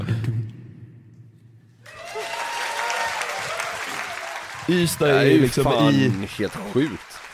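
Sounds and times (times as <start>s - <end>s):
audience cheering: 1.8s - 7.3s
speech: 4.7s - 7.1s.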